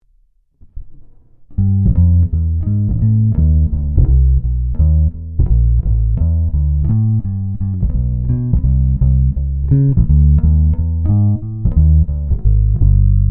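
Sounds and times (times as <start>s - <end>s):
Ibanez EHB1505 bass guitar neck pickup walking bass, passive: 0.6s - 13.2s.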